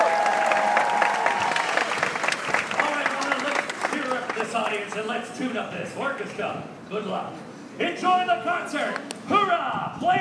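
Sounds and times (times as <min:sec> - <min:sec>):
audience applause for the concertmaster before an orchestra concert: 0:00.0 - 0:05.1
speech: 0:04.8 - 0:10.1.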